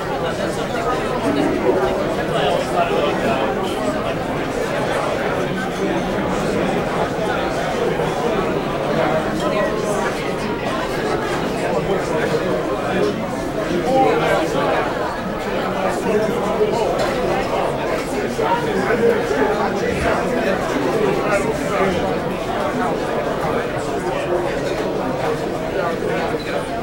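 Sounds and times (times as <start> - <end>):
busy pub crowd walla: 0.0 - 26.8.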